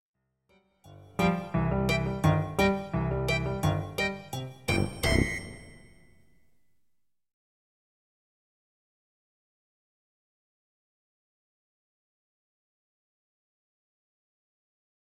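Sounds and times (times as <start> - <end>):
march music: 0.9 - 6.0.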